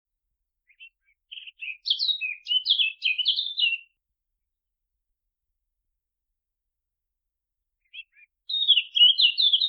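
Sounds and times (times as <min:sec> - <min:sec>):
Eurasian blackcap Sylvia atricapilla warbling song: 0:00.6 - 0:03.9, 0:07.8 - 0:09.6.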